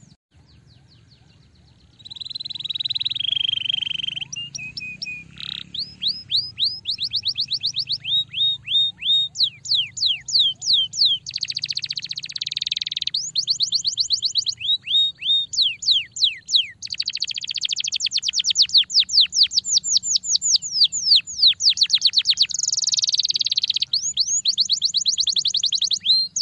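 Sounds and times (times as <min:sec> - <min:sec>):
Belgian canary singing rolling tours and buzzy trills: 0:00.0 - 0:26.4.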